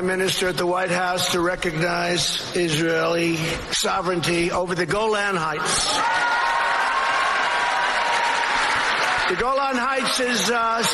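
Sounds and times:
speech: 0.0 - 6.3, 9.3 - 10.9
large crowd cheering and applauding: 5.9 - 10.9.

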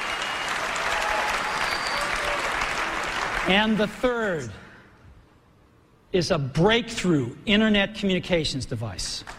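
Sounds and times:
scattered audience cheers and whoops at a keynote: 0.0 - 3.1
large audience applauding at a keynote: 0.0 - 3.8
speech: 3.4 - 4.6, 6.1 - 9.3.

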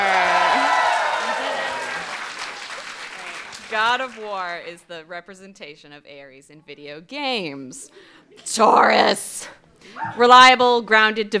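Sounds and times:
audience applause: 0.0 - 4.6
speech: 3.8 - 11.3.

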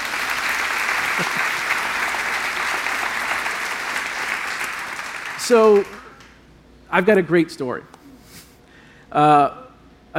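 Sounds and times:
audience applause: 0.0 - 6.2
speech: 5.5 - 6.0, 6.9 - 7.9, 9.1 - 10.1.

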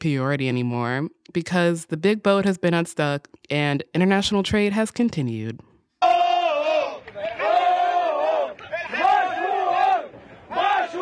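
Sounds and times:
speech: 0.0 - 6.1
tugboat crew cheering and shouting: 6.0 - 11.0.

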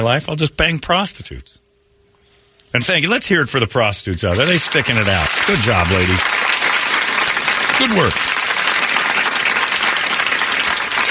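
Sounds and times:
speech: 0.0 - 1.6, 2.7 - 6.5, 7.8 - 8.4
audience applause: 4.3 - 11.0.

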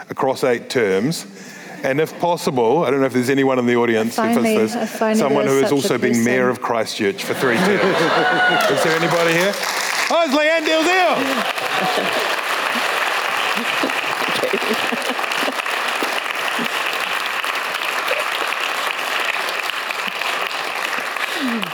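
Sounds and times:
speech: 0.1 - 12.4
laughter: 4.4 - 6.3, 7.2 - 17.1
audience ovation at a live literary event in Christchurch: 7.3 - 21.7.

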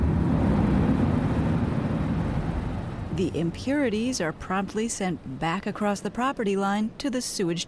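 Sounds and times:
air forced through water filtration equipment: 0.0 - 3.6
speech: 3.2 - 7.6.

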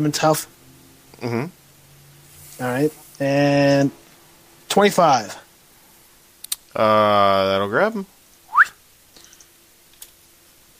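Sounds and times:
speech: 0.0 - 0.6, 1.2 - 1.6, 2.6 - 4.0, 4.7 - 5.4, 6.8 - 8.2
low steady hum: 0.0 - 10.7
whistling into the microphone: 8.5 - 8.8.

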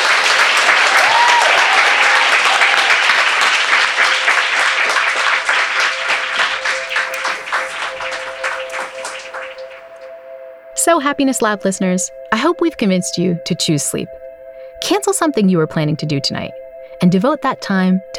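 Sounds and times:
crowd applause: 0.0 - 10.0
speech: 10.9 - 14.2, 14.9 - 18.1.

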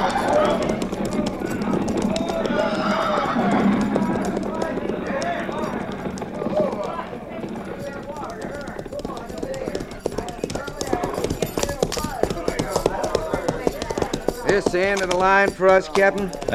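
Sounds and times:
horse whinnying: 0.0 - 6.9
dense rumble of movement: 0.0 - 8.7
many horses' hooves clip-clopping: 0.0 - 16.5
speech: 14.7 - 16.5.

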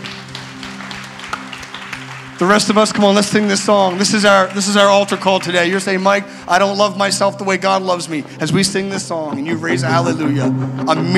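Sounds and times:
audience applause: 0.0 - 6.8
speech: 2.4 - 11.1.

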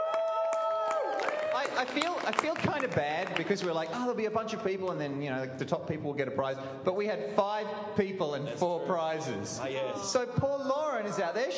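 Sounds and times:
audience applause: 0.0 - 4.2
speech: 1.6 - 11.5.

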